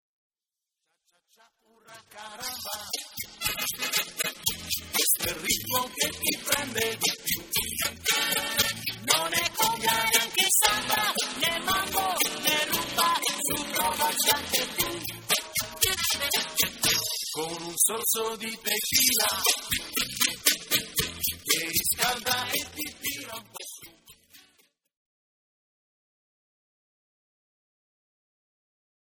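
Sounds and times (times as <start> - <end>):
cha cha cha music: 2.1 - 24.6.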